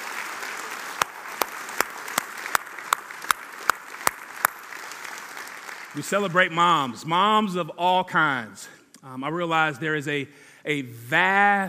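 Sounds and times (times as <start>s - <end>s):
audience applause: 0.0s - 6.4s
speech: 6.0s - 11.6s.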